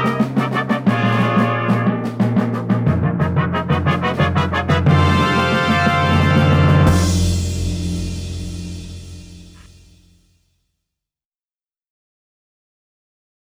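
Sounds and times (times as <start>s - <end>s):
trumpets: 0.0s - 9.9s
drums: 0.0s - 10.2s.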